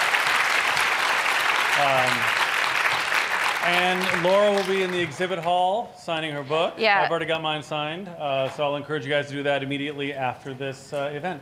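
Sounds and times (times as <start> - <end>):
audience applause: 0.0 - 5.8
speech: 1.8 - 2.4, 3.6 - 11.3.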